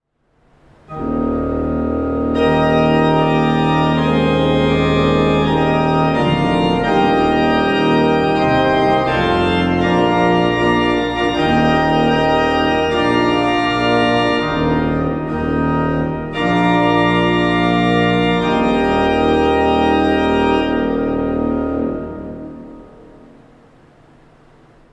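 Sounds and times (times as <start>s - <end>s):
pipe organ: 0.5s - 24.8s.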